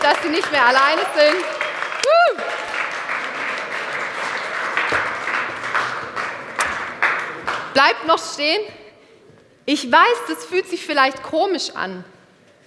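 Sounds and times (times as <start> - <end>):
audience clapping: 0.0 - 7.9
speech: 0.1 - 2.7, 7.8 - 8.8, 9.7 - 12.1.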